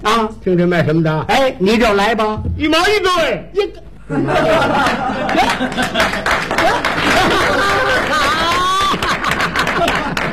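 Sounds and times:
speech: 0.1s - 7.8s
audience chuckling and laughing: 4.1s - 10.3s
audience clapping at a live comedy stage show: 4.8s - 10.3s.

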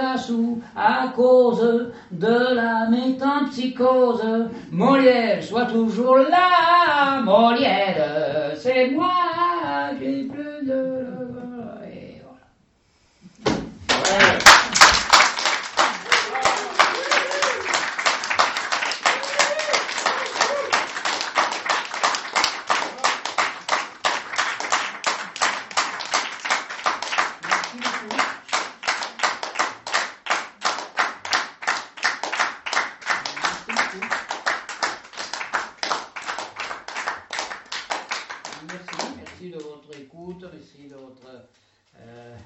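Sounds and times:
speech: 0.2s - 10.9s
audience applause after a Molière-themed stage talk: 13.9s - 39.3s.

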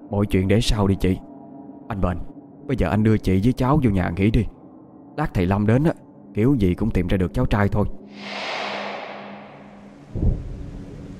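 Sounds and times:
speech: 0.1s - 1.3s, 1.9s - 4.6s, 5.2s - 8.7s
thunder: 8.2s - 11.1s.

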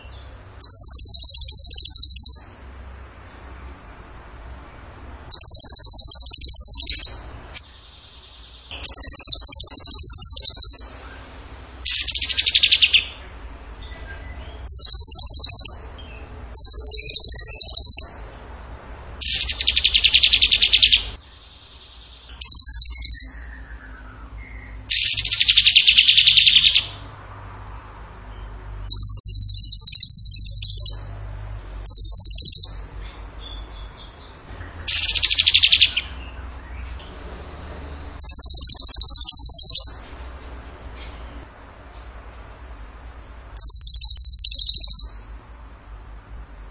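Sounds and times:
bird trilling: 0.0s - 2.7s, 5.3s - 11.2s, 11.8s - 13.3s, 14.2s - 18.2s, 19.2s - 27.0s, 28.8s - 31.1s, 31.8s - 36.8s, 38.0s - 40.2s, 43.5s - 45.4s.

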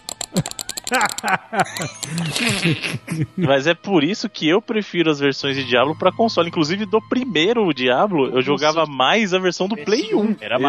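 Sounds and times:
rapid mouse clicking playing League of Legends: 0.0s - 2.4s
laughter: 0.3s - 3.9s
speech: 0.3s - 10.6s.

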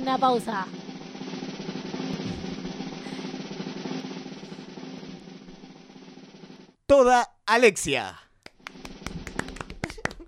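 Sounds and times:
speech: 0.1s - 0.8s, 6.9s - 8.2s
hand clapping: 8.4s - 10.2s.

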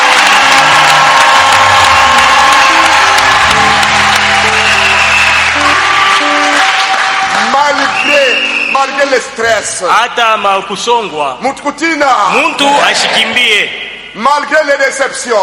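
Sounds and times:
sustained musical tones: 0.0s - 7.9s
church congregation clapping and cheering for God: 0.0s - 10.9s
speech: 9.1s - 15.4s.

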